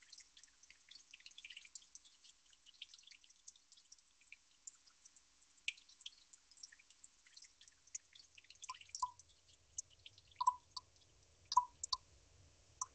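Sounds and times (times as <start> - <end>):
water drops ticking: 0.0 - 12.0
fuller lower water drop plinks: 10.4 - 10.9, 11.5 - 12.0.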